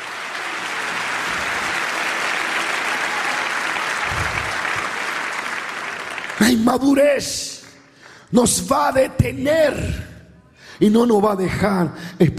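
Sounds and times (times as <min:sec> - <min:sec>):
audience applauding: 0:00.0 - 0:08.1
speech: 0:06.5 - 0:07.5, 0:08.3 - 0:10.0, 0:10.8 - 0:12.3.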